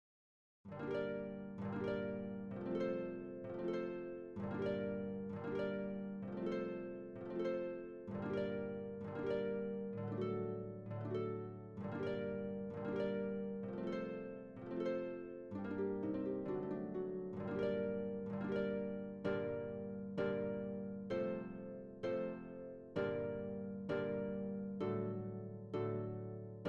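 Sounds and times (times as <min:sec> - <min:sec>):
recercada accompaniment music: 0:00.7 - 0:26.6.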